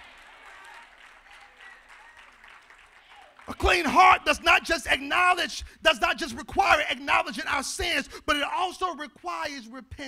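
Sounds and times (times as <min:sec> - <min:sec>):
audience clapping hands: 0:00.0 - 0:04.2
speech: 0:03.5 - 0:10.0.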